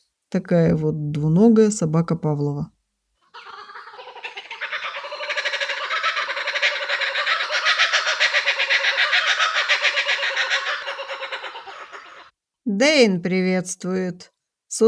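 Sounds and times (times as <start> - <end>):
speech: 0.3 - 2.8, 13.0 - 14.8
kookaburra call: 3.2 - 12.3.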